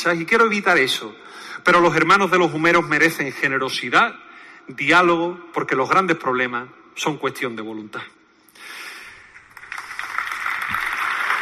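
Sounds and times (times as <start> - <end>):
speech: 0.0 - 8.2
audience applause in a cathedral: 9.5 - 11.4.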